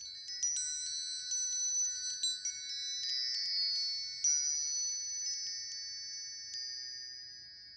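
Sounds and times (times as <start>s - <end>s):
wind chimes: 0.0s - 7.7s.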